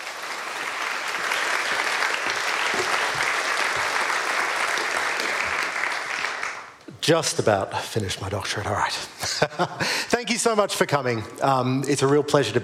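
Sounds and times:
audience applause welcoming a speaker at a book talk: 0.0 - 6.8
speech: 7.1 - 12.6.

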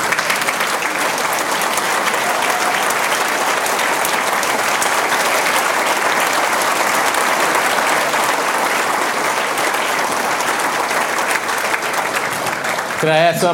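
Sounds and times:
audience applause: 0.0 - 13.5.

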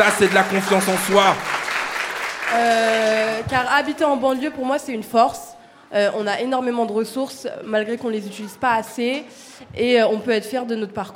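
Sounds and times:
speech: 0.0 - 1.5, 2.5 - 11.1
audience applause: 0.0 - 3.5.

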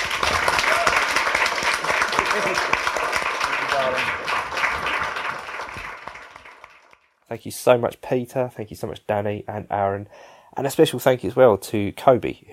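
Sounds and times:
audience applause: 0.0 - 7.1
faint voices and cheers: 0.4 - 4.1
speech: 2.4 - 2.9, 3.8 - 4.4, 7.3 - 12.5.

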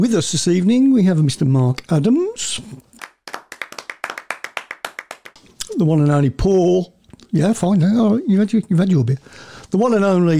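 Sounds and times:
speech: 0.0 - 2.9, 5.8 - 10.3
applause sound effect: 3.0 - 5.4.

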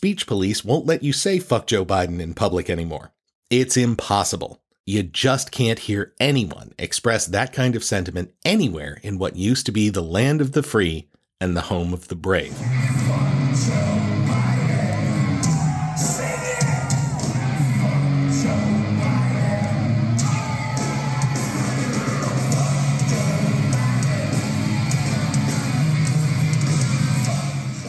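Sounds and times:
speech: 0.0 - 13.0
concert crowd yelling: 12.6 - 27.8.

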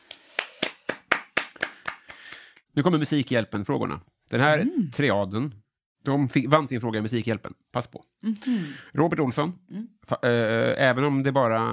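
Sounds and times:
hand claps on a Swedish talk show: 0.0 - 2.7
speech: 2.8 - 11.7.

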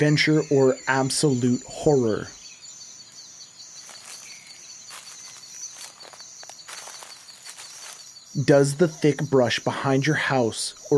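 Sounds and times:
speech: 0.0 - 2.4, 8.4 - 10.9
footsteps crunching through dry leaves and twigs in the woods: 3.8 - 8.3.

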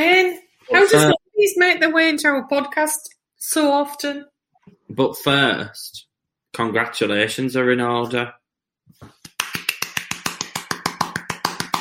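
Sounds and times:
speech: 0.9 - 4.3, 4.9 - 9.2
hands clapping: 9.0 - 11.8.

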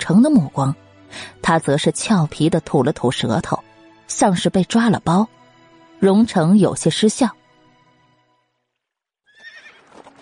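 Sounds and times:
speech: 0.1 - 5.4, 6.0 - 7.4
horse hoofbeats: 9.3 - 10.1
horse whinnying: 9.3 - 10.1.

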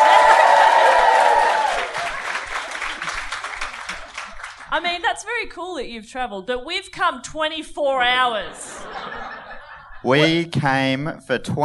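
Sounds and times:
audience round of applause: 0.0 - 4.7
speech: 4.8 - 9.1, 10.0 - 11.6
laughter: 8.4 - 10.5.

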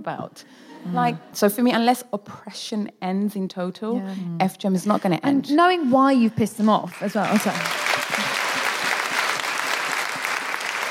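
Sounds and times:
speech: 0.0 - 8.2
audience applause: 6.9 - 10.8.

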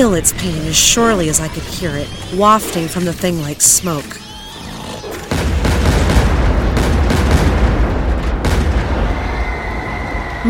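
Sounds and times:
speech: 0.0 - 4.2
gunshots: 5.2 - 10.2.

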